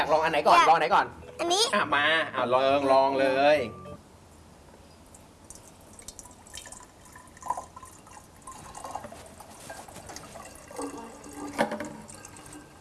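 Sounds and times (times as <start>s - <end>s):
speech: 0.0s - 3.8s
water poured into a container: 5.5s - 12.7s.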